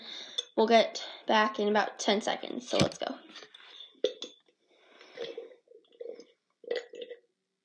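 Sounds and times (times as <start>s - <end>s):
speech: 0.6s - 3.2s
person drinking water in gulps: 3.3s - 4.4s, 5.0s - 7.3s.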